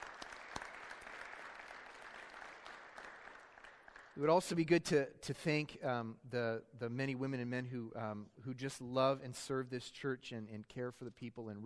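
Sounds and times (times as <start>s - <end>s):
round of applause: 0.0s - 4.4s
speech: 4.2s - 11.6s.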